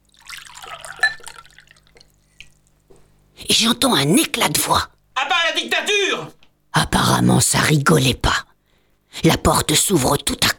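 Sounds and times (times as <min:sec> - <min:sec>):
water poured from carafe into glass: 0:00.0 - 0:02.7
soft drips: 0:00.0 - 0:03.1
speech: 0:03.5 - 0:04.9, 0:05.6 - 0:06.4, 0:07.2 - 0:08.4, 0:09.2 - 0:10.5.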